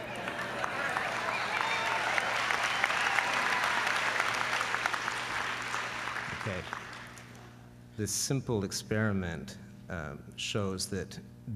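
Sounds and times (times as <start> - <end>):
audience applause: 0.0 - 7.4
speech: 6.5 - 6.8, 8.0 - 11.5.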